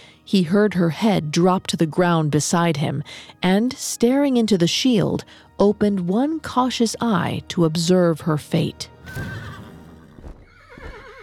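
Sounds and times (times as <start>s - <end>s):
speech: 0.3s - 9.5s
horse whinnying for winged horse Pegasus: 9.0s - 11.2s.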